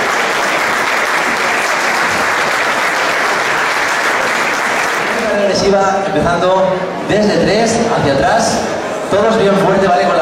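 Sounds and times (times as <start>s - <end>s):
audience applause: 0.0s - 5.6s
speech: 5.7s - 10.1s.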